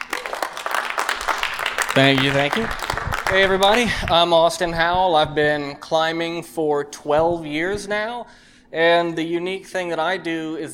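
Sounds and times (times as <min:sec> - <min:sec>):
audience applause: 0:00.0 - 0:04.2
speech: 0:02.0 - 0:10.7.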